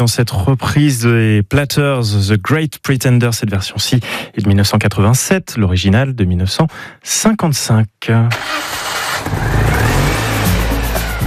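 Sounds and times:
speech: 0.0 - 9.5
Citroën 2CV car engine running: 9.1 - 11.2.

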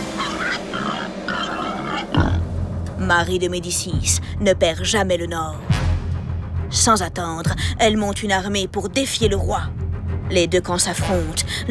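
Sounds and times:
wild boars grunting along a road at night: 0.0 - 2.5
speech: 3.1 - 5.7, 6.7 - 11.7.

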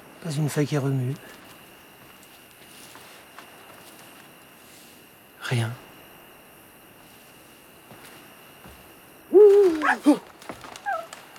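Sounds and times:
speech: 0.2 - 1.4, 5.5 - 5.8, 10.0 - 10.3
owl hooting: 9.3 - 10.2, 10.8 - 11.2.

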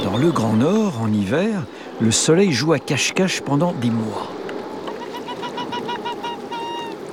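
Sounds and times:
speech: 0.1 - 4.4
arctic fox yelping: 4.9 - 7.0.

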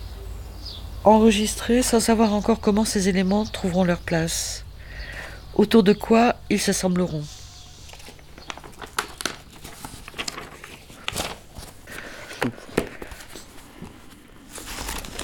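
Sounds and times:
speech: 1.0 - 4.7, 5.6 - 7.4
paper postcards being handled: 7.0 - 15.2.

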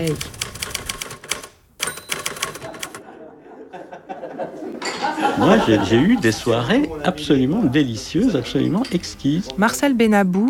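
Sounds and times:
speech: 0.0 - 0.4, 5.4 - 10.4
clacking of an old Remington typewriter: 0.0 - 3.0
laughter: 2.5 - 8.0.

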